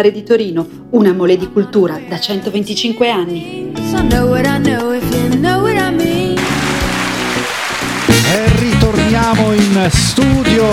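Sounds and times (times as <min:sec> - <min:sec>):
speech: 0:00.0 - 0:06.1, 0:09.2 - 0:10.7
melodic music track: 0:00.9 - 0:10.7
studio applause: 0:06.4 - 0:10.7.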